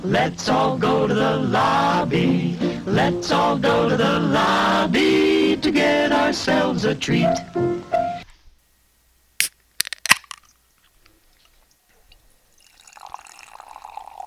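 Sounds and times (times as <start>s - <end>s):
speech: 0.0s - 8.0s
clicks and pops as beer is opened: 9.4s - 10.6s
fizzy beer pouring: 11.4s - 14.2s.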